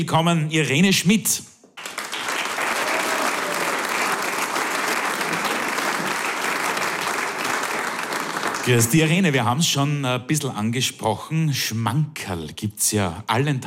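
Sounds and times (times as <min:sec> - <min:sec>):
speech: 0:00.0 - 0:01.5, 0:08.7 - 0:13.6
audience applause: 0:01.8 - 0:09.1.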